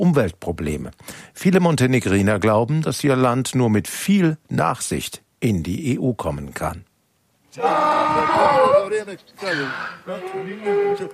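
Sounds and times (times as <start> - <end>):
speech: 0.0 - 6.9, 7.6 - 11.1
hungry donkey braying: 7.6 - 11.1.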